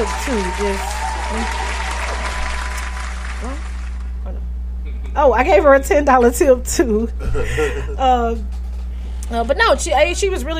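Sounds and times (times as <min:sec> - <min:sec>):
speech: 0:00.0 - 0:01.8, 0:03.4 - 0:03.7, 0:05.2 - 0:08.6, 0:09.3 - 0:10.5
clapping: 0:00.0 - 0:04.2
laughter: 0:07.2 - 0:08.0.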